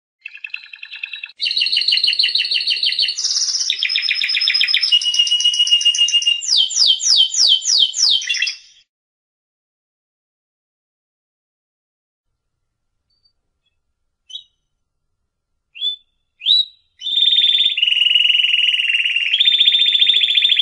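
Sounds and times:
competition first-place winner canary singing trills: 0:00.2 - 0:08.8, 0:13.1 - 0:14.7, 0:15.8 - 0:20.6.

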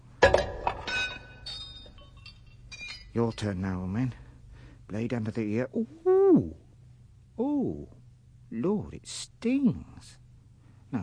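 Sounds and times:
glassy clink of a thrown paraffin lamp: 0:00.2 - 0:03.8
speech: 0:03.2 - 0:04.2, 0:04.9 - 0:06.6, 0:07.4 - 0:10.2.

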